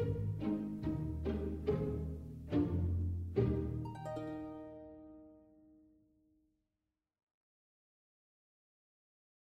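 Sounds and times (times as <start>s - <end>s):
trailer music: 0.1s - 5.7s.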